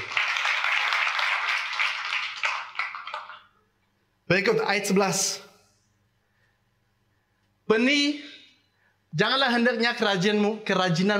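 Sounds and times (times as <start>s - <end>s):
audience clapping: 0.0s - 3.6s
speech: 4.3s - 5.5s, 7.7s - 8.3s, 9.2s - 11.1s.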